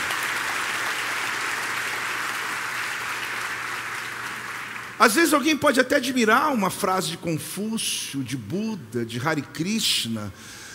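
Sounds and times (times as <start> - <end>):
audience applause: 0.0 - 5.1
speech: 5.0 - 10.6.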